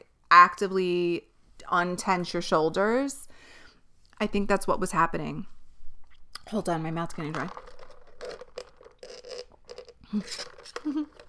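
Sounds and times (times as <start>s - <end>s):
speech: 0.4s - 3.2s, 4.2s - 5.5s, 6.5s - 7.7s, 10.1s - 11.2s
plastic coffee cup being handled: 7.1s - 11.2s.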